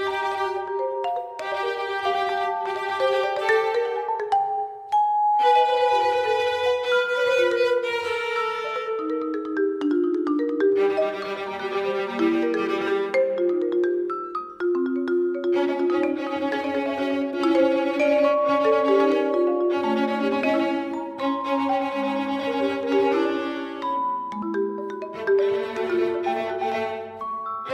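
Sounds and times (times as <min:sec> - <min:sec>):
marimba: 0:00.0 - 0:27.7.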